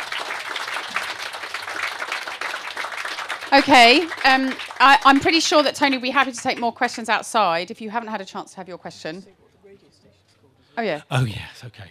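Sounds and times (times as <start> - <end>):
crowd applause: 0.0 - 6.6
speech: 3.5 - 9.4, 10.8 - 11.9.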